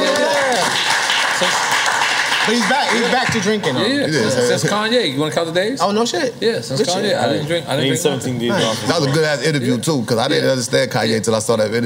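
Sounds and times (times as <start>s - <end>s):
clapping: 0.0s - 3.5s
speech: 2.5s - 11.8s.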